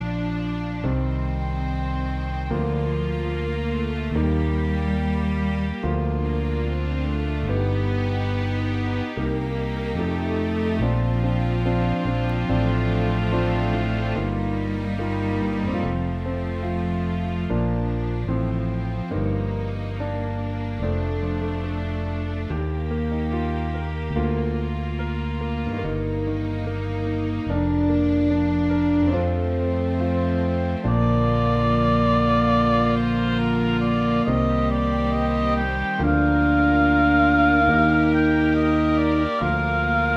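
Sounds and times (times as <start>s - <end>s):
saxophone: 0.0s - 40.1s.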